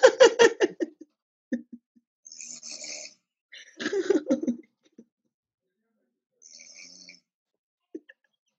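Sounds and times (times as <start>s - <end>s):
laughter: 0.0s - 1.0s, 3.6s - 4.6s
snoring: 2.4s - 3.2s.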